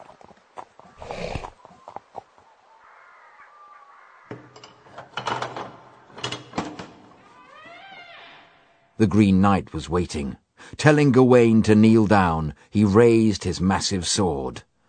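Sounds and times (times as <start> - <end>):
horse hooves clip-clopping as a knight rides to a chapel: 0.0 - 2.5
speech: 9.0 - 14.7.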